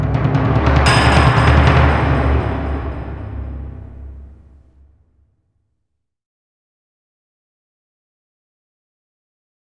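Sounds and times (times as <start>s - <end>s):
angry timpani: 0.0s - 5.0s.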